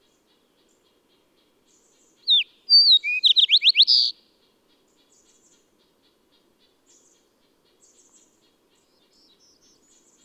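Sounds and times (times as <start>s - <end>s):
bird song: 0.0s - 10.2s.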